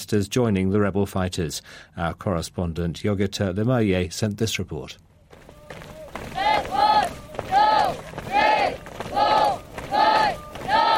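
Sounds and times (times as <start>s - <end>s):
speech: 0.0s - 5.1s
hundreds of young army recruits marching and chanting in an open field: 5.9s - 10.9s.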